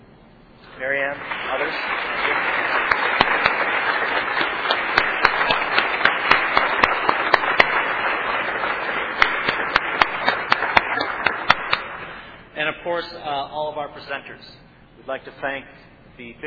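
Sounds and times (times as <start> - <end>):
speech: 0.8 - 2.4, 12.8 - 16.4
round of applause: 0.8 - 12.4.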